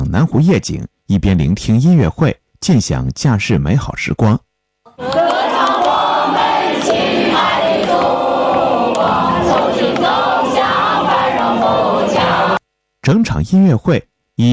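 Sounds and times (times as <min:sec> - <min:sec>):
speech: 0:00.1 - 0:05.4, 0:13.0 - 0:14.5
large concert crowd cheering: 0:04.9 - 0:12.6.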